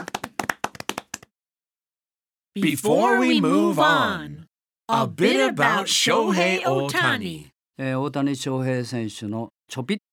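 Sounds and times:
scattered hand claps: 0.0 - 1.3
speech: 2.6 - 10.0.

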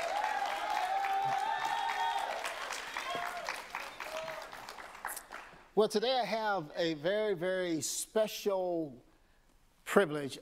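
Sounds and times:
shouts and whoops: 0.0 - 4.6
church congregation clapping in praise: 0.0 - 5.8
speech: 5.8 - 9.1, 10.0 - 10.4.

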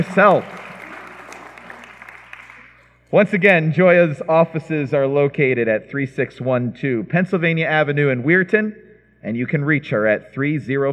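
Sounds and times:
speech: 0.0 - 0.6, 3.1 - 10.9
round of applause: 0.0 - 2.9.

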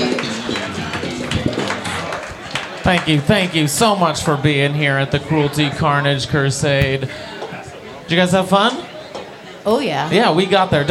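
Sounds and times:
audience applause: 0.0 - 4.7
speech: 2.9 - 7.4, 8.1 - 8.8, 9.6 - 10.9.

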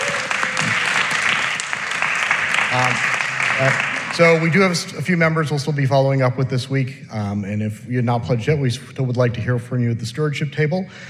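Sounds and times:
round of applause: 0.0 - 4.9
speech: 2.7 - 11.0.

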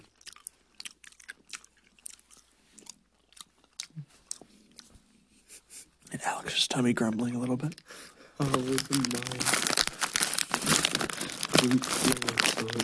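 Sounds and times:
Skittles candy chewing: 0.0 - 4.9, 7.0 - 12.8
speech: 6.2 - 9.7, 11.6 - 12.8.

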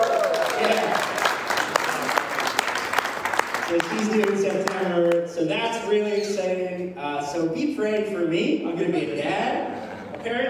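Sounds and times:
audience applause: 0.0 - 5.2
speech: 3.7 - 10.4.

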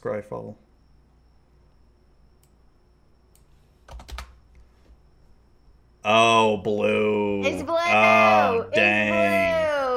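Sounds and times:
speech: 0.0 - 0.7, 6.0 - 8.9
typing a card name on a computer keyboard: 3.9 - 4.4.

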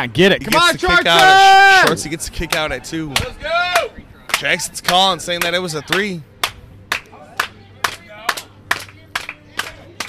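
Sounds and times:
speech: 0.0 - 6.3
wrestling crowd clapping in rhythm to spur on a wrestler: 0.5 - 10.0
low chatter: 0.6 - 10.0.

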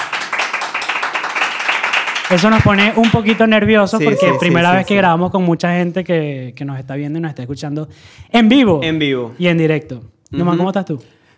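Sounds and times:
audience applause: 0.0 - 4.8
speech: 2.3 - 11.2.

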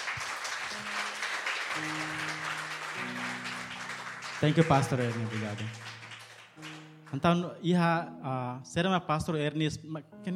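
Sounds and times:
audience applause: 0.0 - 7.2
speech: 1.8 - 2.1, 4.4 - 6.0, 7.1 - 10.3.

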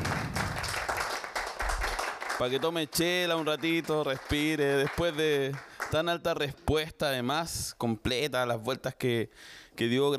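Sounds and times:
audience applause: 0.0 - 6.0
speech: 2.4 - 10.1.

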